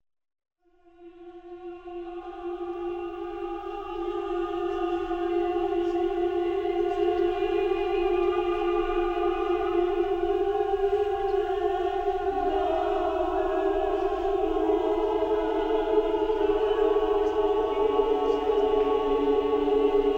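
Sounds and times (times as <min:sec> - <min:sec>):
synthesizer: 0:00.8 - 0:20.1.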